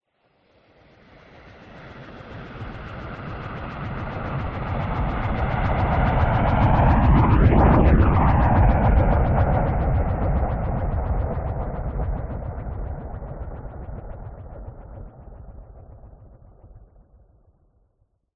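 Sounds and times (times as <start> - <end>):
large loud science fiction spacecraft spinning pass by: 2.0 - 16.3.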